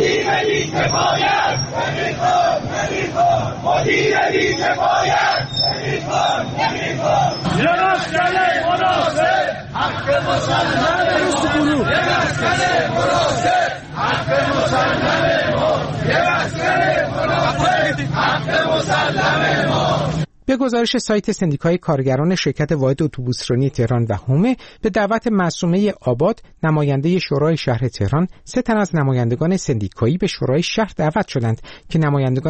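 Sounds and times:
crowd of protesters chanting slogans at a rally: 0.0s - 20.3s
speech: 0.3s - 17.6s, 18.4s - 32.4s.

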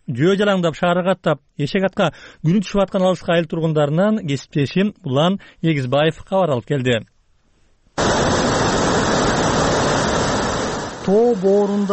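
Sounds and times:
speech: 0.1s - 7.1s, 11.1s - 11.9s
muddy mountain river roaring down through a mudslide: 8.0s - 11.9s.

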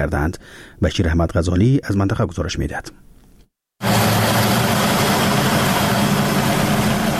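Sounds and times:
speech: 0.0s - 3.0s
small electricity-generating turbine in Doab village, Khinjan district, Baghlan: 3.8s - 7.1s.

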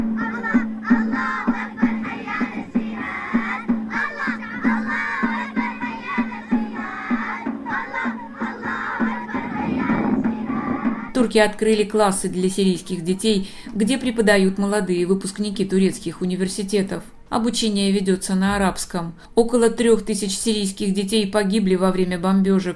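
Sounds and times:
teenagers' street concert with drums: 0.0s - 12.9s
speech: 11.2s - 22.7s.

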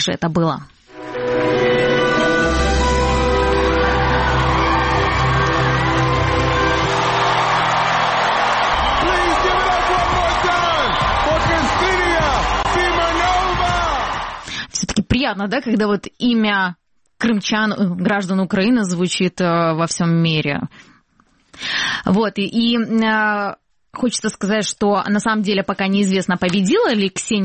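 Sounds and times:
speech: 0.0s - 0.8s, 15.2s - 20.9s, 21.6s - 27.4s
audience cheering and applauding: 2.1s - 14.7s.

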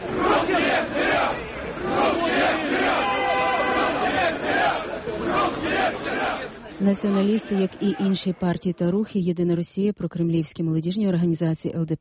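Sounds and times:
crowd shouting slogans at a march: 0.0s - 8.3s
speech: 6.8s - 12.0s.

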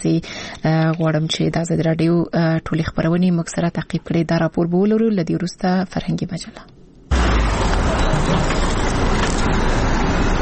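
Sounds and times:
speech: 0.0s - 6.7s, 8.3s - 8.6s
vehicles loaded with medical supplies bound for health centres in Uruzgan: 7.1s - 10.4s.

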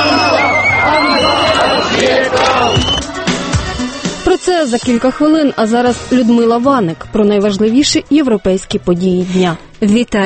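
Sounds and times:
street protesters shouting and chanting: 0.0s - 3.2s
speech: 4.6s - 10.2s.

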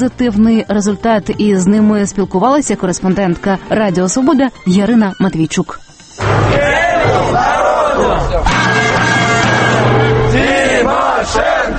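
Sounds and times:
speech: 0.0s - 9.0s, 9.8s - 11.7s
protesters chanting a slogan: 6.2s - 11.7s.

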